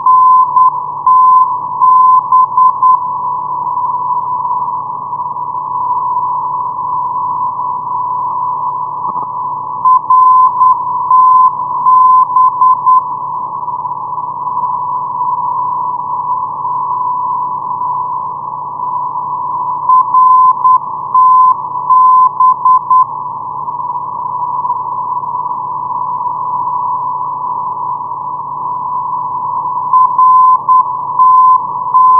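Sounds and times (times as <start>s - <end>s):
non-directional radio beacon signal on 415.0: 0.0s - 32.1s.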